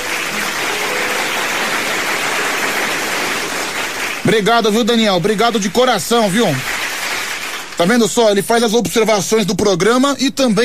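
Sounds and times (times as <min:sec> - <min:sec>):
audience applause: 0:00.0 - 0:07.9
speech: 0:04.3 - 0:06.7, 0:07.8 - 0:10.6.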